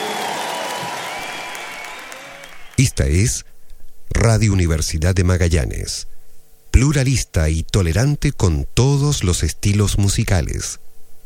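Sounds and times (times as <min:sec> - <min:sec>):
audience applause for musicians: 0:00.0 - 0:02.9
speech: 0:02.8 - 0:03.5, 0:04.1 - 0:06.1, 0:06.8 - 0:10.9.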